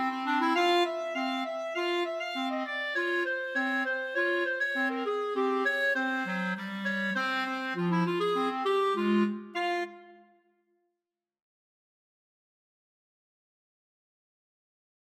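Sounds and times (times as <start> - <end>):
clarinet trio: 0.0 - 10.2.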